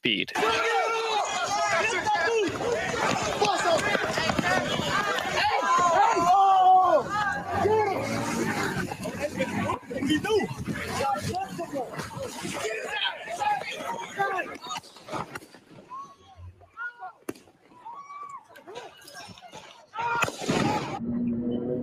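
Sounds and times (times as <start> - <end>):
speech: 0.0 - 0.8
chaotic crowd shouting and yelling: 0.4 - 15.2, 17.8 - 21.0
gunshot: 20.2 - 21.0.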